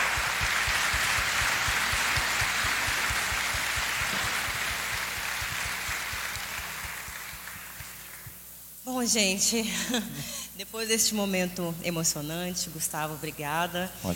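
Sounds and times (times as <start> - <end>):
audience applause: 0.0 - 8.4
speech: 8.9 - 14.1.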